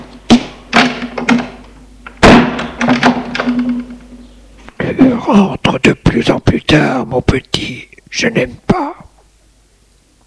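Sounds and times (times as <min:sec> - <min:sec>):
office door closing: 0:00.0 - 0:04.2
steady low hum: 0:00.0 - 0:10.2
speech: 0:05.0 - 0:09.1.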